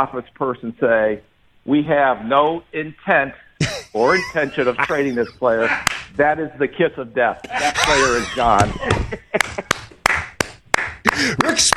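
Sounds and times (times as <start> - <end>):
speech: 0.0 - 9.6, 11.3 - 11.7
laughter: 3.6 - 6.1, 7.4 - 9.9
people clapping: 5.8 - 6.1, 7.4 - 11.7.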